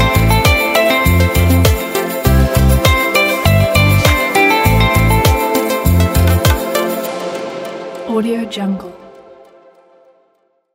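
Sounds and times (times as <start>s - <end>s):
motivational reggae music: 0.0s - 7.4s.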